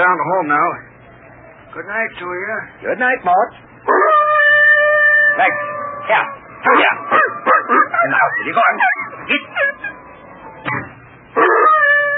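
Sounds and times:
speech: 0.0 - 0.9, 1.7 - 4.0, 5.4 - 7.1, 8.0 - 10.0, 11.4 - 11.8
hound dog howling and whining: 3.9 - 12.1.

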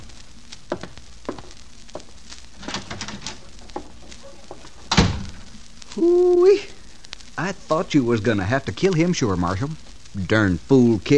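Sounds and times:
door opening and closing: 2.6 - 3.5, 4.1 - 5.4
speech: 7.5 - 11.1.

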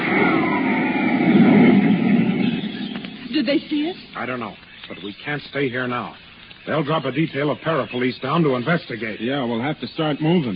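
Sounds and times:
Solar Guard jet aircraft flying overhead: 0.0 - 4.2
speech: 3.4 - 10.5.

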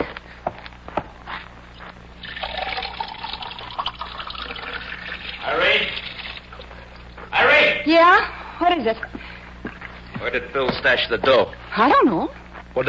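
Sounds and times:
water poured into a glass: 2.2 - 6.7
speech: 7.9 - 9.1, 10.2 - 12.8.

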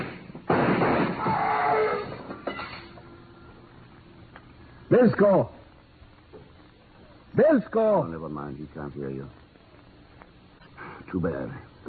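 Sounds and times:
gunshot fired through a door: 0.0 - 1.7
speech: 4.9 - 5.6, 7.4 - 9.4, 11.1 - 11.8.

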